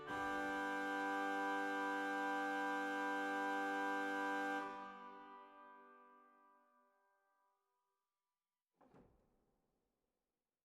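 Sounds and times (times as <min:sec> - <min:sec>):
Bovenpositief Viola di Gamba 8 organ stop in Zwolle: 0:00.0 - 0:05.6.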